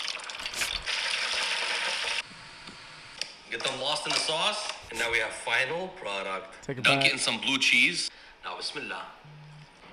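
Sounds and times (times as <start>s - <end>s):
chicken wings deep-frying in hot oil: 0.0s - 2.2s
speech: 3.6s - 9.2s.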